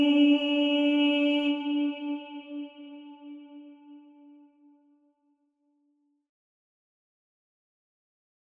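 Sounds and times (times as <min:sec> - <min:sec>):
alto voice singing: 0:00.0 - 0:04.3.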